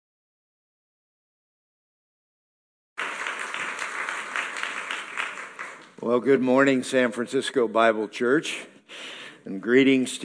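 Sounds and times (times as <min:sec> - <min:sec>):
church congregation applauding a preacher: 0:03.0 - 0:06.4
speech: 0:06.0 - 0:10.2.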